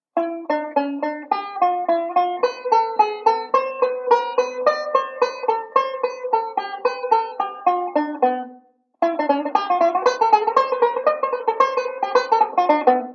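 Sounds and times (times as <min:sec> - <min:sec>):
banjo playing a ii V pattern: 0:00.0 - 0:13.1.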